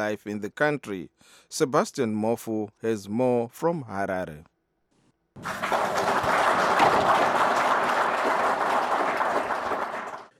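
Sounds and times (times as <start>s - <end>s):
speech: 0.0s - 4.5s, 5.4s - 5.8s
officials clapping: 5.4s - 10.3s.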